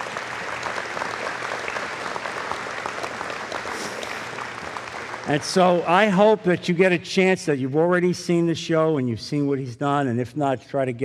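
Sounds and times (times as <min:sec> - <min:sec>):
audience applause welcoming a performer: 0:00.0 - 0:06.6
speech: 0:05.3 - 0:11.0.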